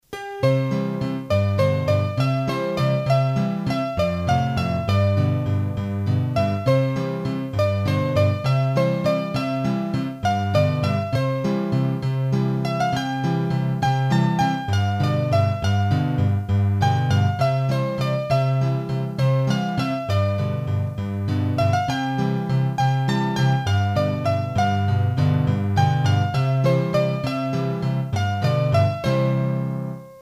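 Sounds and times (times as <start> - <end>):
hurdy-gurdy waltz: 0.2 - 30.2.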